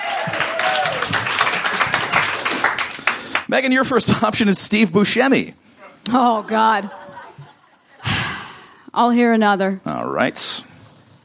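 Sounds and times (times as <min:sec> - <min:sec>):
audience clapping hands: 0:00.0 - 0:03.8
speech: 0:03.5 - 0:07.0, 0:09.0 - 0:10.7
laughter: 0:06.1 - 0:08.3.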